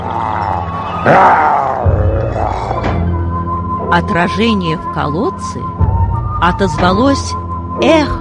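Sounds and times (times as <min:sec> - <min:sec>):
lion roaring loudly: 0:00.0 - 0:03.2
speech: 0:01.0 - 0:01.4, 0:03.9 - 0:05.8, 0:06.4 - 0:08.2.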